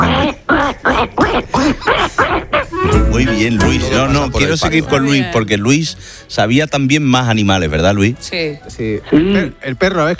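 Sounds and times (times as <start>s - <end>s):
person imitating a duck quacking: 0.0s - 3.3s
speech: 3.4s - 10.1s.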